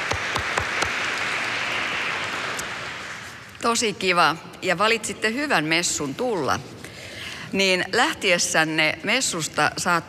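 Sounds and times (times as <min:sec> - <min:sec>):
audience applause: 0:00.0 - 0:03.5
speech: 0:03.6 - 0:06.8, 0:07.5 - 0:10.0.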